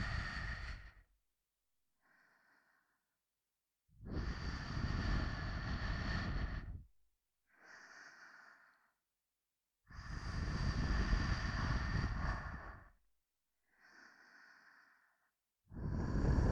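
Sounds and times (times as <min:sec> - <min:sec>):
person breathing in the left ear: 0:00.0 - 0:01.1, 0:02.0 - 0:03.1, 0:04.1 - 0:06.8, 0:07.5 - 0:09.0, 0:10.0 - 0:12.9, 0:13.7 - 0:16.5.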